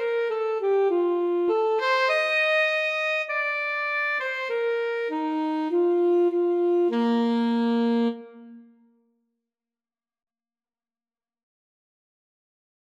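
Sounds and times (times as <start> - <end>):
clarinet: 0.0 - 8.9
saxophone: 0.0 - 8.9.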